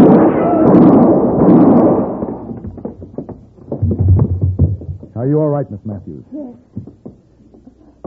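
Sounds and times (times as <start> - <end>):
rumbling burst of noise: 0.0 - 5.1
speech: 5.2 - 7.0.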